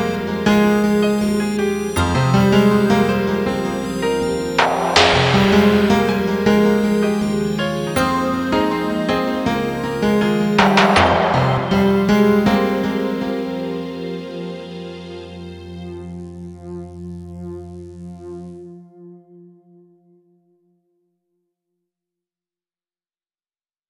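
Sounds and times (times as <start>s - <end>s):
instrumental trance music: 0.0s - 18.0s.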